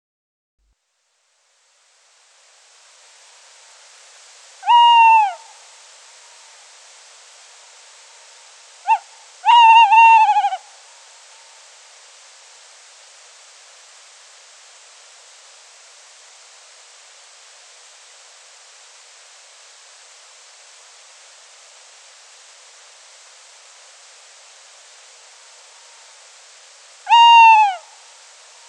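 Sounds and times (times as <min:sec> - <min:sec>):
tawny owl call: 0:04.6 - 0:05.7, 0:08.8 - 0:10.8, 0:27.0 - 0:28.6.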